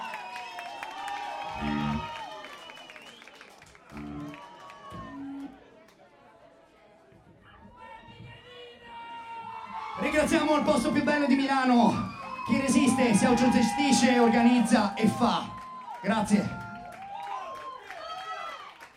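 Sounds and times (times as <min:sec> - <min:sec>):
audience applause: 0:00.0 - 0:05.8, 0:11.9 - 0:18.9
speech: 0:10.2 - 0:16.6.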